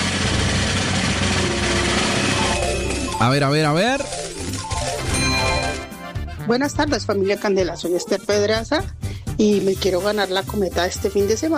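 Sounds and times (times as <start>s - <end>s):
prize roulette wheel spinning: 0.3s - 6.1s
speech: 3.2s - 4.2s, 6.4s - 11.5s.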